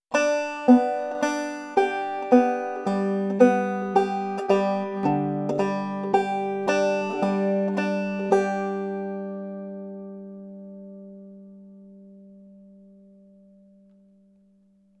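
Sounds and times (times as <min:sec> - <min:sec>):
banjo drop thumbing: 0:00.1 - 0:11.2.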